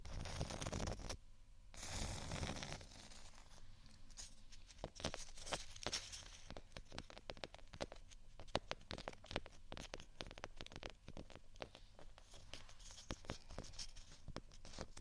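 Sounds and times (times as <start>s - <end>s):
scratching on textured items: 0.0s - 1.2s, 1.8s - 14.9s
tapping on textured items: 4.8s - 14.9s.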